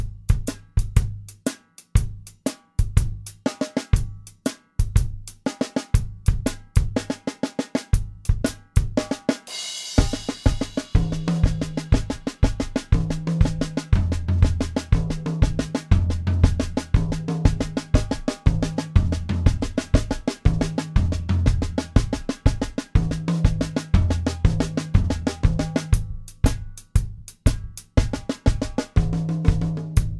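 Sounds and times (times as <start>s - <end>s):
drum kit solo for beginning or intermediate student: 0.0s - 30.1s.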